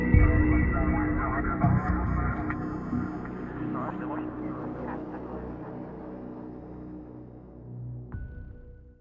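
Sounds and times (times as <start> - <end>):
police station ambience: 0.1 - 6.3.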